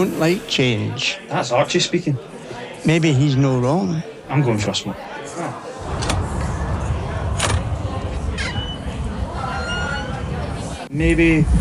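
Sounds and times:
speech: 0.0s - 6.1s, 11.0s - 11.6s
door opening: 5.8s - 10.4s.

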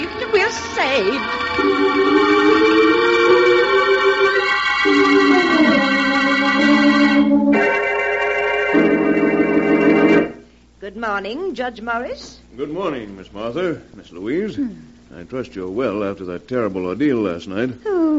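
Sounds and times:
fire engine siren approaching: 0.0s - 10.4s
speech: 0.9s - 1.7s, 11.0s - 18.1s.

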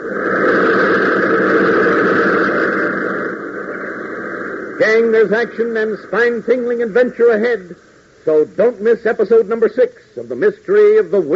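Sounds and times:
pounding roar of motors: 0.0s - 6.3s
speech: 5.0s - 11.3s.

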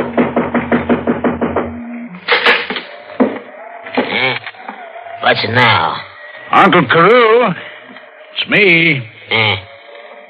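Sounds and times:
knocking on a door: 0.0s - 1.8s
speech: 5.3s - 7.7s, 8.4s - 9.7s.

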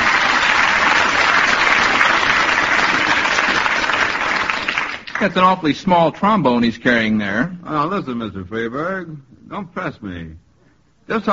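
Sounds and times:
audience applause: 0.0s - 5.4s
speech: 5.2s - 10.4s, 11.1s - 11.3s.

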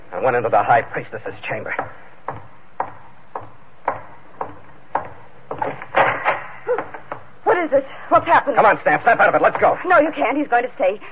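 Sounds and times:
speech: 0.2s - 2.1s, 7.6s - 11.1s
door being barred shut: 5.5s - 6.6s.

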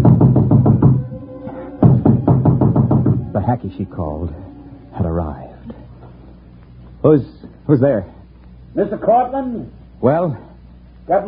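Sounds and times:
knocking on a door: 0.0s - 1.2s, 1.8s - 3.6s
speech: 3.4s - 5.5s, 7.0s - 8.2s, 8.8s - 10.5s, 11.1s - 11.2s.

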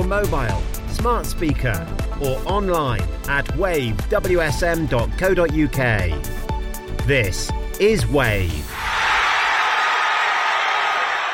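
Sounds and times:
speech: 0.1s - 6.4s, 7.1s - 8.9s
fans cheering England reaching World Cup last 16 against DR Congo: 8.7s - 11.3s.

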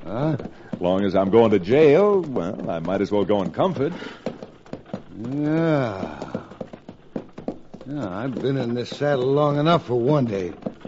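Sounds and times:
horses' hooves of an approaching stagecoach: 0.0s - 10.8s
speech: 0.1s - 4.3s, 5.2s - 6.2s, 7.9s - 10.6s.

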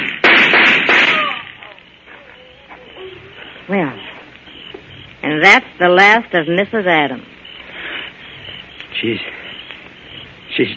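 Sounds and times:
gunshots in a radio drama: 0.0s - 1.7s
speech: 3.7s - 4.1s, 5.2s - 7.3s, 9.0s - 9.4s, 10.6s - 10.7s.

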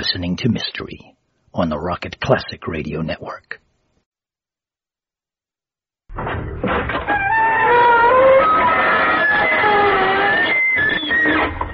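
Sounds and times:
speech: 0.1s - 3.6s
creaking door: 6.1s - 11.7s.

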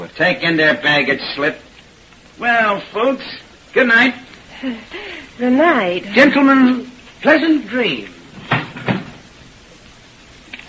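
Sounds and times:
speech: 0.2s - 1.7s, 2.4s - 8.2s
door being shut: 8.4s - 9.2s.

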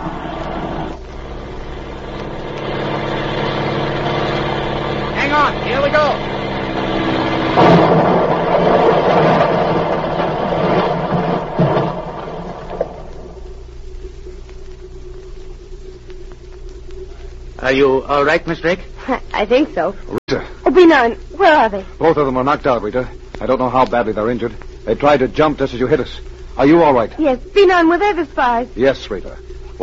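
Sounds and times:
airplane engine during rough landing: 0.0s - 13.6s
speech: 17.7s - 29.8s.

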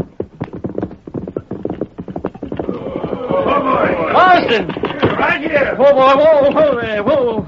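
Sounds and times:
horse hooves: 0.0s - 7.4s
horse whinny: 2.3s - 5.7s
speech: 3.3s - 7.4s.

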